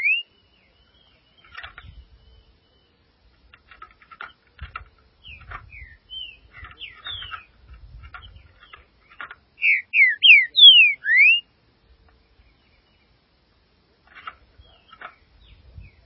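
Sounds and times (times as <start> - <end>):
green-winged saltator singing slurred notes and whistles: 0.0 - 2.9, 5.2 - 7.6, 8.2 - 11.5.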